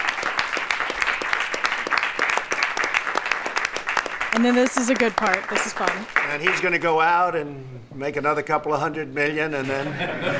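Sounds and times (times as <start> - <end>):
applause in the cabinet meeting: 0.0 - 6.8
speech: 4.4 - 10.3
laughter: 9.7 - 10.3.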